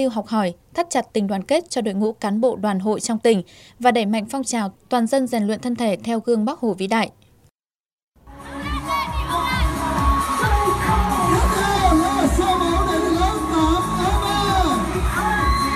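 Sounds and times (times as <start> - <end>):
speech: 0.0 - 7.2
schoolchildren cheering and shouting: 8.3 - 15.7.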